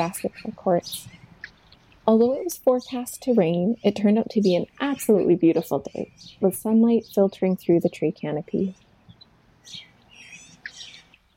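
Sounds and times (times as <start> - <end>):
speech: 0.0 - 1.2, 2.1 - 8.8, 9.6 - 9.9
songbirds calling and chirping: 0.0 - 11.3.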